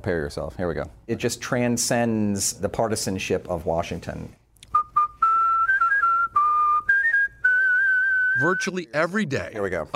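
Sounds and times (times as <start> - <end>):
speech: 0.0 - 4.4, 8.4 - 9.9
man whistling a birthday melody: 4.7 - 8.7.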